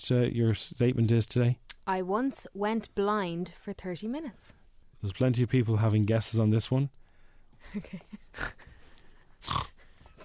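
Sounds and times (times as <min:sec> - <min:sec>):
speech: 0:00.0 - 0:07.0, 0:07.6 - 0:08.7, 0:09.4 - 0:09.7
person snorting: 0:08.3 - 0:08.8, 0:09.4 - 0:09.9.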